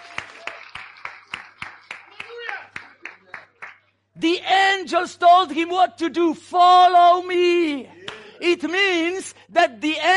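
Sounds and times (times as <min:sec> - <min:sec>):
audience clapping for a speaker in unison: 0:00.0 - 0:04.0
speech: 0:04.2 - 0:10.1.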